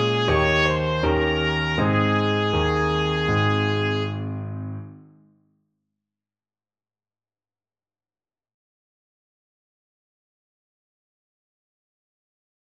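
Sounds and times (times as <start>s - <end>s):
trumpet: 0.0s - 4.9s.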